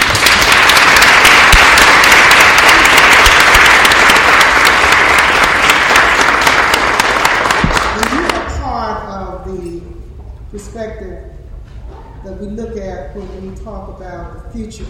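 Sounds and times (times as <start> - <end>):
audience round of applause: 0.0 - 8.4
speech: 13.2 - 14.8.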